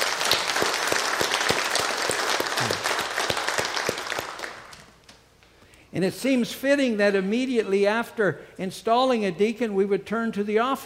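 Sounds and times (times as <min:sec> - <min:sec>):
audience applause: 0:00.0 - 0:05.0
speech: 0:06.0 - 0:10.8.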